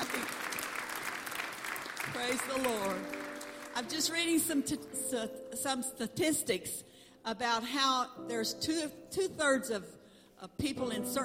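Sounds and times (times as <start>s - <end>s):
audience clapping: 0.0s - 5.1s
speech: 2.0s - 3.2s, 3.8s - 11.2s.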